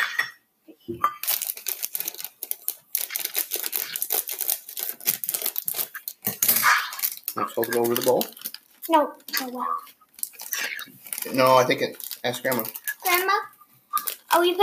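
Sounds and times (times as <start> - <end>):
speech: 0.9 - 1.1, 7.4 - 9.9, 11.3 - 13.5, 14.4 - 14.6
cup being filled with chocolate chips for cookie dough: 1.1 - 14.6.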